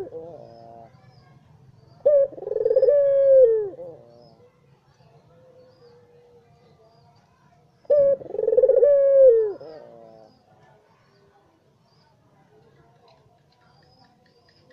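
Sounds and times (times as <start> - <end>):
Barbary dove rolling coos: 0.0 - 1.0, 2.0 - 4.4, 7.8 - 10.4.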